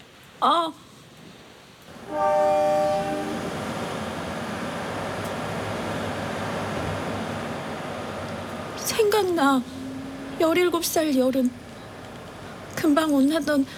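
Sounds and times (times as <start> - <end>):
speech: 0.4 - 0.9, 2.1 - 2.6, 8.9 - 9.8, 10.4 - 11.6, 12.8 - 13.7
train rumble: 1.9 - 13.7
train horn at a train station: 2.0 - 3.7.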